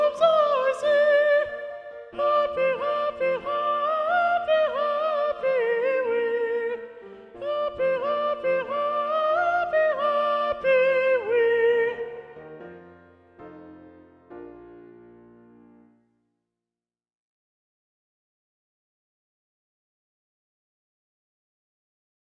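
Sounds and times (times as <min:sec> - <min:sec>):
soprano singing: 0:00.0 - 0:14.3.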